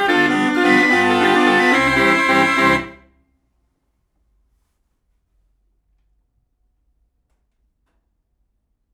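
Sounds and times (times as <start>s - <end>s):
45-note German barrel organ with perforated paper strips: 0.0s - 3.0s.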